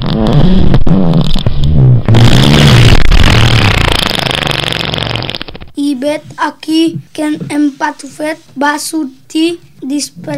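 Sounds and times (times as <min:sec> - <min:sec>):
ox fart sound effect: 0:00.0 - 0:05.8
speech: 0:06.1 - 0:10.3.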